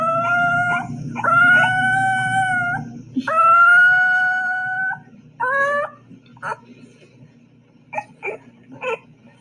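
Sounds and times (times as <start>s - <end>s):
puppy howling and yipping: 0.0s - 6.6s.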